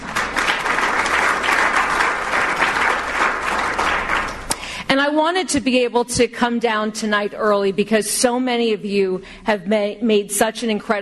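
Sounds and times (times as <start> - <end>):
audience applause: 0.0 - 4.6
speech: 4.9 - 11.0.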